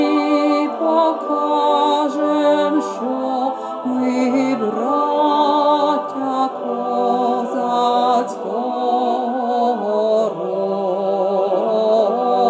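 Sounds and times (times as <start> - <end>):
tenor singing a national anthem: 0.0 - 12.4.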